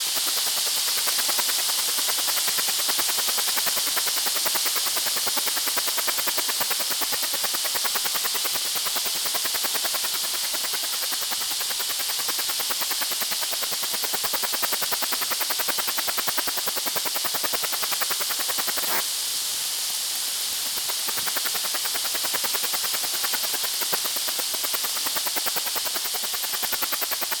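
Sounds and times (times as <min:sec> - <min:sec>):
cicada song: 0:00.0 - 0:27.3.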